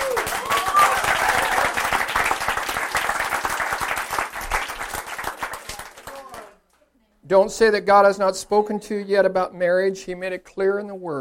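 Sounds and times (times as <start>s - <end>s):
audience clapping: 0.0s - 6.8s
speech: 7.3s - 11.1s.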